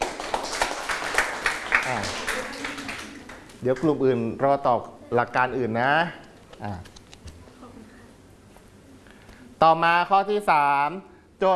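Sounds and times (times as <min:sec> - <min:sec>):
group of people clapping: 0:00.0 - 0:03.6
speech: 0:01.9 - 0:02.3, 0:03.6 - 0:06.9, 0:09.6 - 0:11.5.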